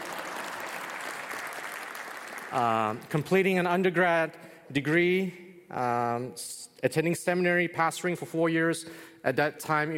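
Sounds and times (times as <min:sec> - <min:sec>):
audience applause: 0:00.0 - 0:03.0
speech: 0:02.5 - 0:09.9.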